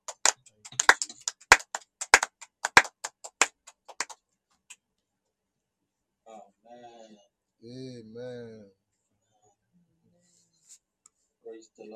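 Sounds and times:
clapping: 0:00.0 - 0:04.8
speech: 0:07.7 - 0:08.8.

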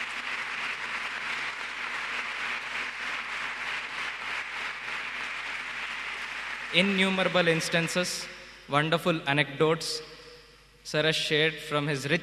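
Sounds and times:
audience round of applause: 0:00.0 - 0:07.8
speech: 0:06.7 - 0:10.1, 0:10.8 - 0:12.2.

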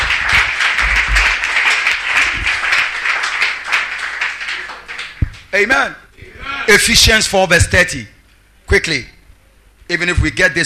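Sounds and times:
crowd clapping hands: 0:00.0 - 0:05.6
speech: 0:05.6 - 0:06.0, 0:06.7 - 0:09.2, 0:09.9 - 0:10.6.

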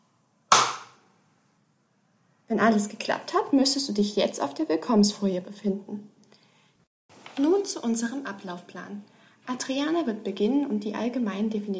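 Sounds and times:
single hand clap: 0:00.5 - 0:01.0
speech: 0:02.5 - 0:06.2, 0:07.4 - 0:11.7.

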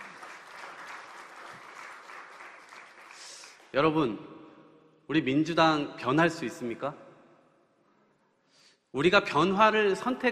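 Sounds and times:
audience applause: 0:00.0 - 0:03.7
speech: 0:03.7 - 0:04.4, 0:05.1 - 0:07.0, 0:08.9 - 0:10.3.

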